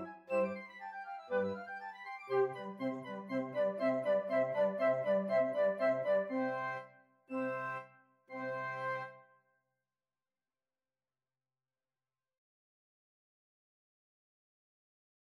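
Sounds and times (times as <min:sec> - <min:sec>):
flute: 0:00.0 - 0:09.3.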